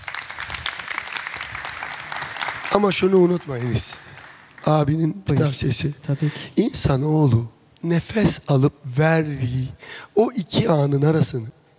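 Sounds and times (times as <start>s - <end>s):
audience applause for a young guest: 0.0s - 5.0s
speech: 2.8s - 4.0s, 4.6s - 11.7s.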